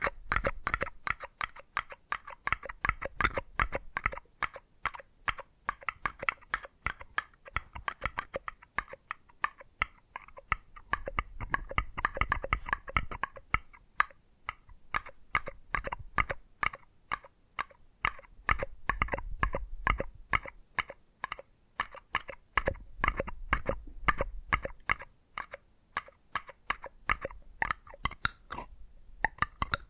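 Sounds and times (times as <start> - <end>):
rapid tapping clicks: 0.0 - 28.4, 29.2 - 29.8.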